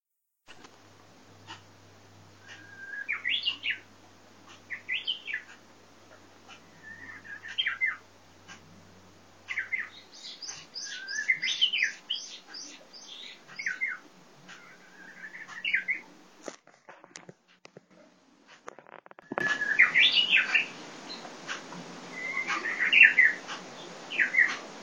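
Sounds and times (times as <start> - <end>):
Japanese bush warbler singing: 1.4 - 16.4, 19.3 - 24.8.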